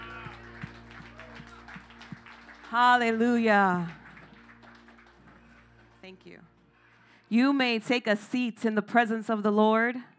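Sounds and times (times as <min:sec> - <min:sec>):
hand clap of praise: 0:00.0 - 0:06.3
speech: 0:02.7 - 0:04.0, 0:06.1 - 0:06.5, 0:07.3 - 0:10.1.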